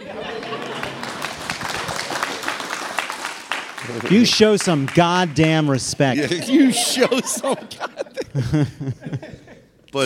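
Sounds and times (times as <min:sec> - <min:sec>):
laughter: 0:00.0 - 0:01.6, 0:05.8 - 0:09.7
audience applause: 0:00.0 - 0:07.7
speech: 0:03.9 - 0:10.0.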